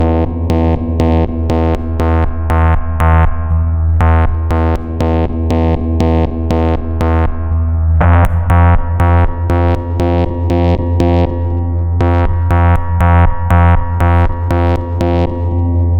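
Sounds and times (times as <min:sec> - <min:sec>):
driving bass line: 0:00.0 - 0:15.9.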